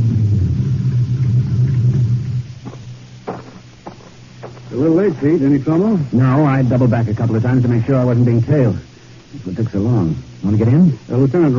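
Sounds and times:
car driving up and stopping: 0.0s - 6.1s
speech: 4.8s - 11.5s.

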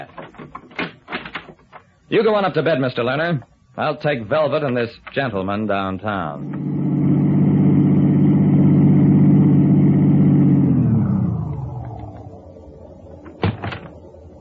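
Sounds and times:
speech: 2.1s - 6.6s
car engine driving off: 6.4s - 14.3s.

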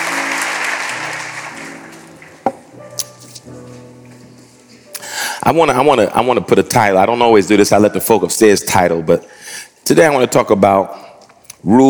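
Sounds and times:
audience applause: 0.0s - 2.0s
organ chords: 0.0s - 7.5s
speech: 5.5s - 11.8s.

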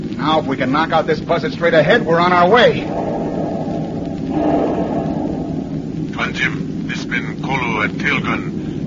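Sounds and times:
speech: 0.2s - 3.0s, 4.3s - 4.7s, 6.2s - 8.8s
bomb exploding: 2.6s - 6.9s.

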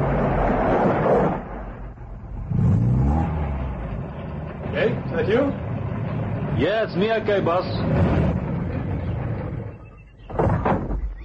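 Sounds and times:
approaching truck engine rumbling and revving with gear-like whine: 0.0s - 10.5s
speech: 6.6s - 8.1s.

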